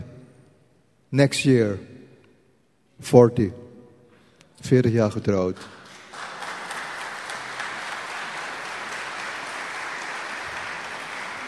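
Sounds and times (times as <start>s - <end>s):
speech: 1.1s - 1.9s, 3.0s - 3.6s, 4.6s - 5.8s
audience applause: 5.6s - 11.4s.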